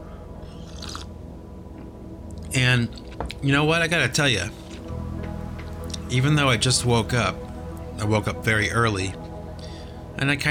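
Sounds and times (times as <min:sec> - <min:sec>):
sipping a cup of coffee: 0:00.5 - 0:01.1
speech: 0:02.6 - 0:04.6, 0:06.1 - 0:09.2, 0:10.2 - 0:10.5.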